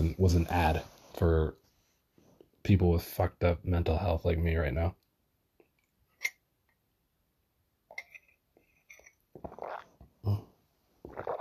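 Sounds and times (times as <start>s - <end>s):
speech: 0.1s - 1.6s, 2.6s - 5.0s, 10.2s - 10.5s
wet mouth noises: 9.3s - 10.4s, 11.0s - 11.4s
throaty swallowing: 9.4s - 11.4s.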